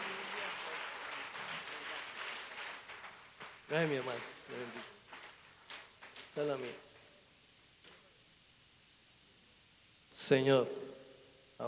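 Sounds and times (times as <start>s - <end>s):
audience applause: 0.0s - 6.8s
speech: 3.7s - 5.0s, 6.4s - 6.9s, 10.3s - 10.8s.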